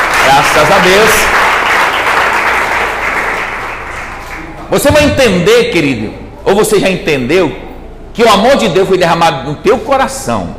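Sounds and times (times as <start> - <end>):
audience applause: 0.0 - 4.6
speech: 0.4 - 1.5, 4.7 - 7.6, 8.2 - 10.5.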